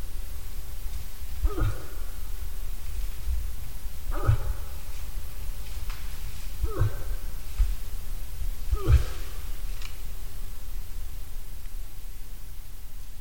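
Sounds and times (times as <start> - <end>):
low hum: 0.0 - 11.7
moose grunting: 1.4 - 2.4, 4.0 - 5.5, 6.4 - 7.7, 8.6 - 10.1.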